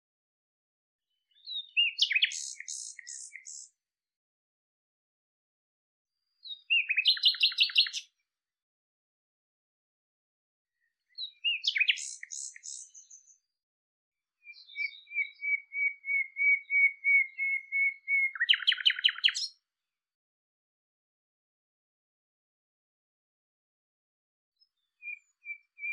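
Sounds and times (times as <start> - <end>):
bird chirping: 1.1 - 3.7, 6.3 - 8.1, 10.8 - 13.5, 14.4 - 19.6, 24.6 - 25.9.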